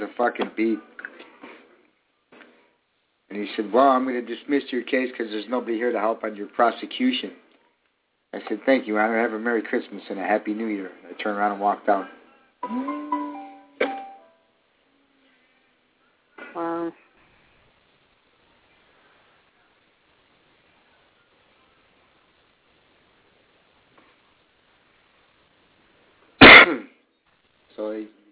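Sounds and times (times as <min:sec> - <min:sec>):
speech: 0:00.0 - 0:01.0, 0:03.3 - 0:07.4, 0:08.3 - 0:13.2
coughing: 0:26.4 - 0:27.0.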